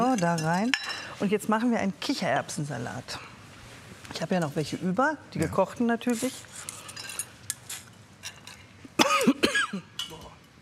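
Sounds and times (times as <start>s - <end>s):
dishes and cutlery clinking: 0.0s - 1.1s, 6.6s - 8.8s, 9.9s - 10.4s
speech: 0.1s - 3.3s, 4.1s - 6.7s
person coughing: 9.0s - 9.9s.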